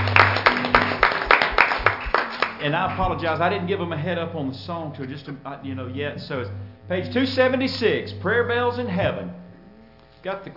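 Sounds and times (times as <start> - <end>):
church congregation rhythmic hand claps in praise: 0.0 - 3.6
low steady hum: 0.0 - 10.5
speech: 2.6 - 9.4, 10.2 - 10.5.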